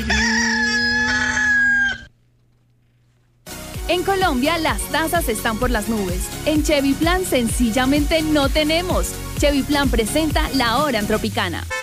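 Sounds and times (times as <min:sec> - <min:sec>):
rooster crowing sound effect: 0:00.0 - 0:02.1
speech: 0:03.9 - 0:11.8.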